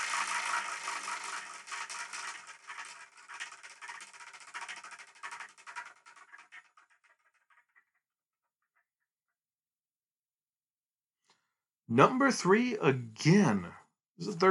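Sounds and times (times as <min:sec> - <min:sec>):
spinner being spun to pick a number: 0:00.0 - 0:08.8
speech: 0:11.9 - 0:14.4.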